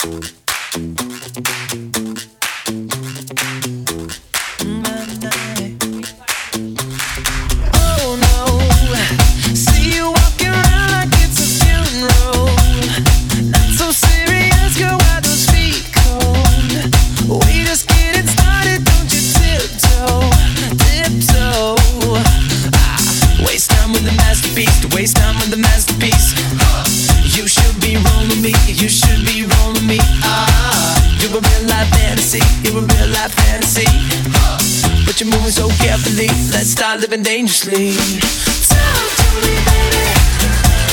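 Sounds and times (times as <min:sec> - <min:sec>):
cha cha cha music: 0:00.0 - 0:40.9.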